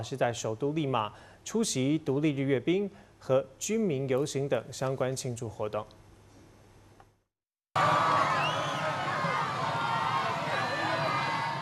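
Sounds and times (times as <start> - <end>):
speech: 0.0 - 6.0
crowd cheering along parade route: 7.8 - 11.6.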